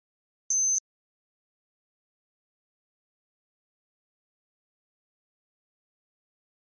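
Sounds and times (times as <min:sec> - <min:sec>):
high-frequency electronic flash beep: 0:00.5 - 0:00.8.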